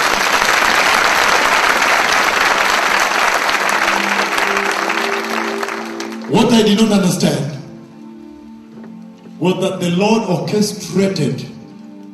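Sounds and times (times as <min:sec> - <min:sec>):
audience clapping: 0:00.0 - 0:06.8
speech: 0:06.3 - 0:07.6, 0:09.4 - 0:11.5.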